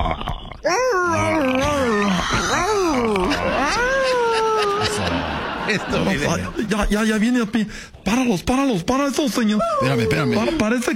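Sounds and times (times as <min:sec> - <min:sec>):
person imitating a dog whimpering in pain: 0:00.0 - 0:05.2, 0:09.6 - 0:10.6
speech: 0:00.6 - 0:01.0, 0:05.8 - 0:10.9
laughter: 0:01.9 - 0:07.0.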